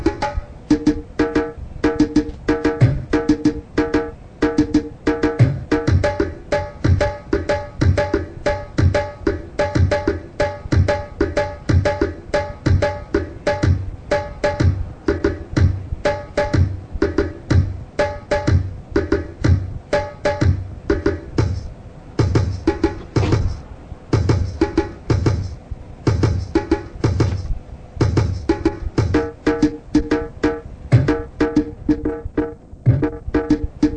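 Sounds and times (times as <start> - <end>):
drum rhythms: 0.0 - 33.9.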